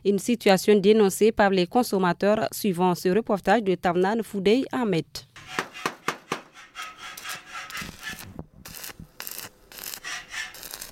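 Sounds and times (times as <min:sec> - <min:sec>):
speech: 0:00.0 - 0:05.6
metalwork rasping strokes in a welding workshop making iron stands: 0:05.4 - 0:10.9.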